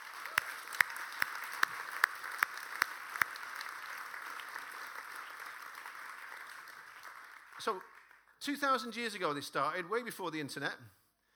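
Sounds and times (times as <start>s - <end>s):
audience applause: 0.0s - 8.3s
speech: 7.6s - 11.0s.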